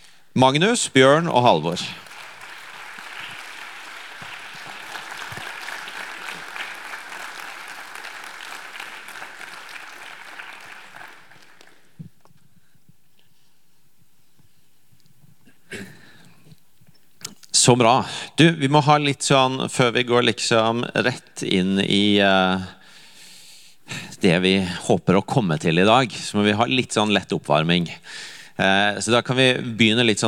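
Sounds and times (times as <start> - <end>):
speech: 0.4 - 2.1, 17.7 - 22.8, 23.9 - 30.2
crowd applauding: 1.0 - 12.0.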